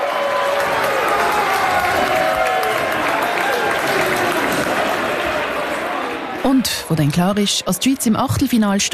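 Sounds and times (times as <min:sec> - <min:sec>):
crowd applauding at final whistle: 0:00.0 - 0:08.4
speech: 0:06.5 - 0:08.9.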